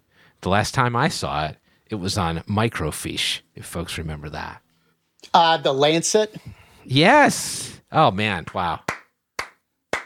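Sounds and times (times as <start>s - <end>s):
speech: 0.4s - 4.6s, 5.2s - 9.0s
single person clapping: 8.8s - 10.0s.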